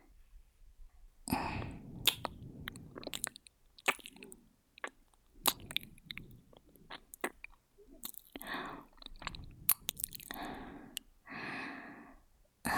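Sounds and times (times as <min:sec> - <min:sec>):
ear licking in the right ear: 0:01.4 - 0:11.1.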